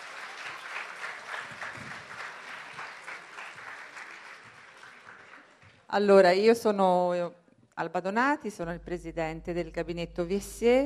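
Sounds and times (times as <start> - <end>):
audience applause: 0.0 - 5.9
speech: 5.9 - 10.8.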